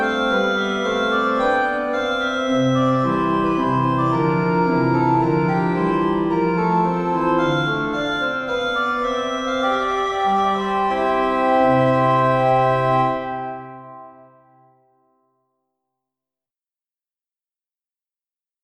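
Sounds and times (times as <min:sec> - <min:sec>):
organ gavotte in C major: 0:00.0 - 0:14.7.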